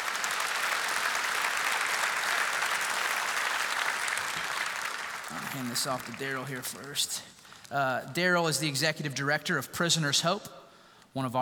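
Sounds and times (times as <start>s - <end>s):
audience clapping: 0.0s - 8.1s
speech: 5.5s - 11.4s.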